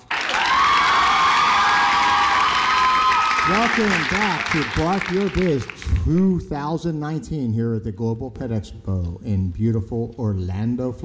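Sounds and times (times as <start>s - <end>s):
crowd cheering and whooping: 0.0s - 5.3s
scattered clapping: 0.0s - 6.1s
speech: 3.5s - 11.0s.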